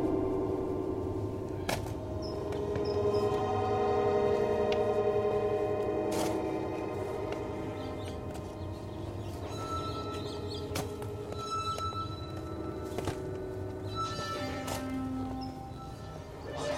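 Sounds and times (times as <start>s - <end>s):
low steady rumble: 0.0s - 10.2s
slow meditative synth tones: 0.0s - 16.7s.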